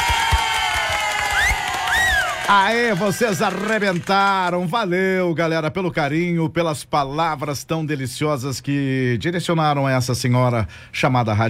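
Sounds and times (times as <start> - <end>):
crowd cheering at a radio station's on-air celebration: 0.0 - 4.6
people clapping: 0.0 - 4.7
rising whistles: 1.3 - 2.4
speech: 2.5 - 11.4.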